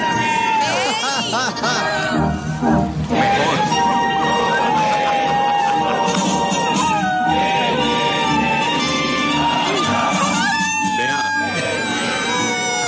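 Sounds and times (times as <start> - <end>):
laughter: 0.4 - 2.4, 3.2 - 7.3
army dog howling along to national anthem: 3.2 - 12.8.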